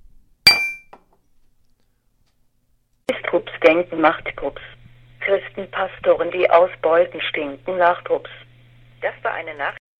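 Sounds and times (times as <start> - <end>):
glasses clinking together in a toast: 0.5 - 1.0
speech: 3.3 - 4.7, 5.3 - 8.4, 9.0 - 9.8.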